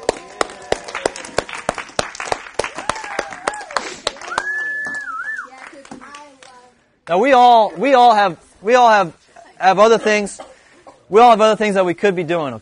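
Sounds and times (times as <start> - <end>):
audience applause: 0.0 - 6.2
speech: 7.1 - 10.5, 11.1 - 12.6.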